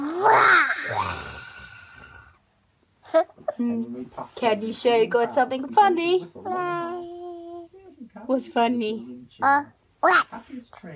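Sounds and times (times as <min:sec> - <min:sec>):
child imitating a tiger roar: 0:00.0 - 0:01.5
speech: 0:03.6 - 0:07.1, 0:08.3 - 0:10.9.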